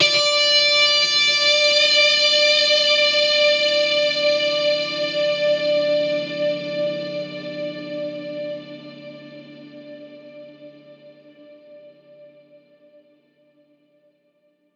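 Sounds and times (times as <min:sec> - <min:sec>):
guitar notes D: 0:00.0 - 0:11.1.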